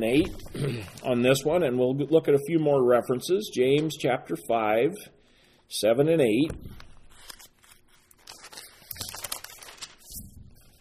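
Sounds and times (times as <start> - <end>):
speech: 0.0 - 6.8
Bible pages turning: 6.7 - 10.7.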